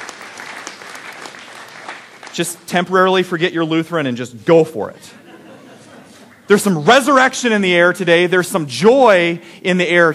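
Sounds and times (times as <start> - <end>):
audience clapping: 0.0 - 3.0, 6.2 - 6.5
speech: 2.4 - 5.2, 6.5 - 10.1
laughter: 5.1 - 6.5.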